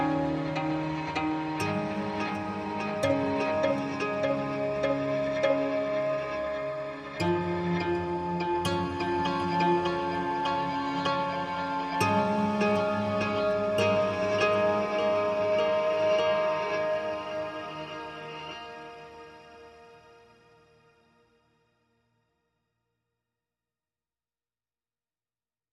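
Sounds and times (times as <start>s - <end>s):
guitars playing: 0.0s - 18.9s.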